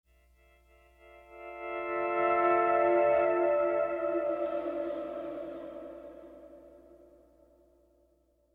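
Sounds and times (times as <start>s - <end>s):
pleasant guitar playing: 1.0s - 7.1s.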